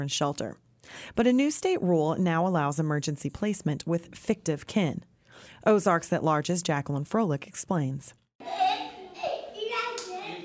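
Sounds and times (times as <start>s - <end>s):
speech: 0.0s - 8.8s
young children chattering in a children's shelter in rural Benton County, Arkansas: 8.4s - 10.4s
young children clapping hands in a children's shelter: 9.9s - 10.3s.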